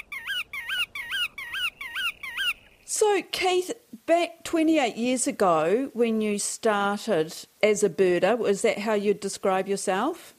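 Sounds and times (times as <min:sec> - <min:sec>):
godwit calling: 0:00.0 - 0:02.9
speech: 0:03.0 - 0:10.3.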